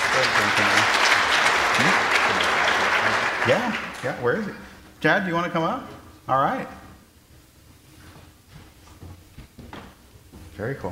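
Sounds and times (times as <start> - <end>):
crowd clapping: 0.0 - 4.5
speech: 3.4 - 6.8, 10.6 - 10.9.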